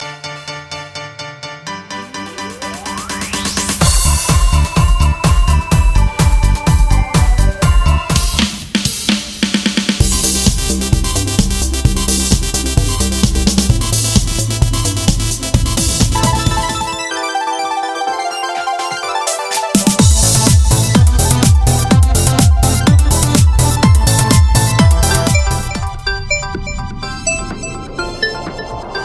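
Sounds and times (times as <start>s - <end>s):
pop radio jingle: 1.7s - 29.0s.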